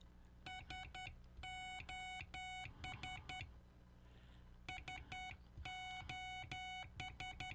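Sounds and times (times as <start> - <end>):
SOS in Morse code beeps: 0.5 - 3.5, 4.7 - 7.5.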